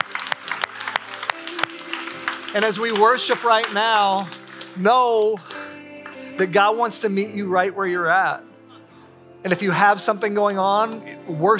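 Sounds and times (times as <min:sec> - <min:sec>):
audience clapping: 0:00.0 - 0:07.0
speech: 0:02.5 - 0:05.6, 0:06.4 - 0:08.5, 0:09.4 - 0:11.5.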